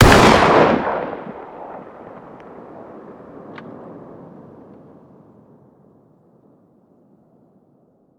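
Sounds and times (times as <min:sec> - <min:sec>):
distant fire: 0:00.0 - 0:05.8.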